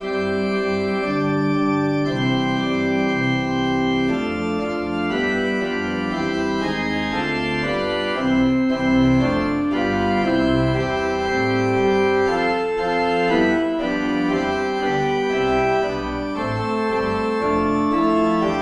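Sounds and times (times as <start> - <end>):
organ playing hymns without words: 0.0 - 18.6.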